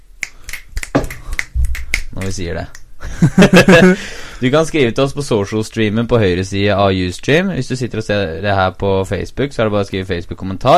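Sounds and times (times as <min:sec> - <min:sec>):
finger snapping: 0:00.2 - 0:02.9
speech: 0:02.2 - 0:10.7
laughter: 0:03.0 - 0:04.0.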